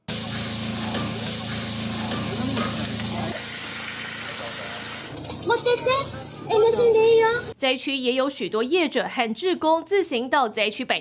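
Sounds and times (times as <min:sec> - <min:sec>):
food sizzling in a pan while stirred: 0:00.0 - 0:07.6
speech: 0:07.6 - 0:10.9.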